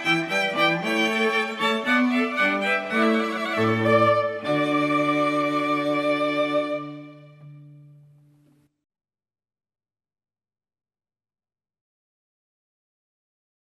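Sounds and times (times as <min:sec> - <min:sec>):
string quartet playing: 0:00.0 - 0:08.5.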